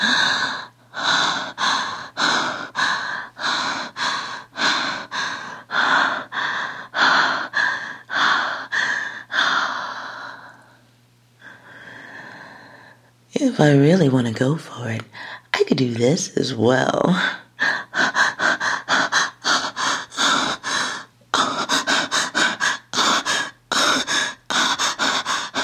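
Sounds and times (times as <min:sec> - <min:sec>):
rapid loud breathy panting: 0:00.0 - 0:10.4, 0:17.2 - 0:25.6
speech: 0:13.6 - 0:17.4.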